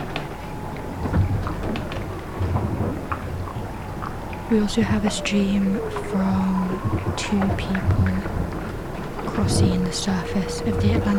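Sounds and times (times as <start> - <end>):
whales calling to each other under the ocean surface: 0.0 - 11.1
speech: 4.5 - 8.4, 9.4 - 11.1.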